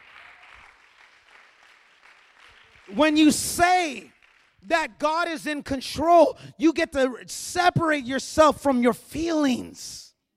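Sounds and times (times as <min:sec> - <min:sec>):
crowd clapping: 0:00.0 - 0:05.0
speech: 0:02.9 - 0:10.0.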